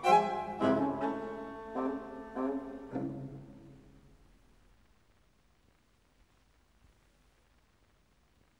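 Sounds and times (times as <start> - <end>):
string quartet playing allegro molto in C major: 0.0 - 3.8.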